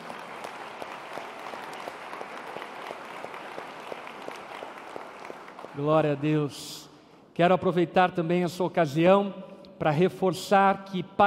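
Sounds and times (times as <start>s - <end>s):
audience applause: 0.0s - 6.4s
speech: 5.8s - 6.8s, 7.4s - 11.2s.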